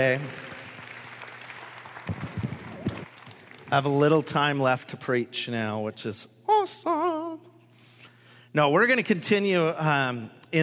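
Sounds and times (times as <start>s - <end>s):
speech: 0.0s - 0.4s, 3.7s - 7.0s, 8.5s - 10.6s
audience applause: 0.0s - 3.8s.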